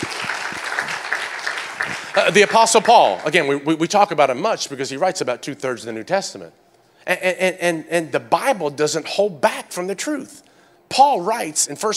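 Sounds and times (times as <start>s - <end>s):
audience clapping: 0.0s - 3.7s
speech: 2.2s - 11.9s.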